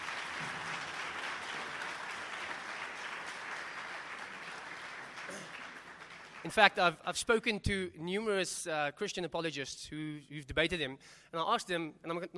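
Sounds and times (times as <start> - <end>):
audience round of applause: 0.0 - 6.6
speech: 6.4 - 12.3.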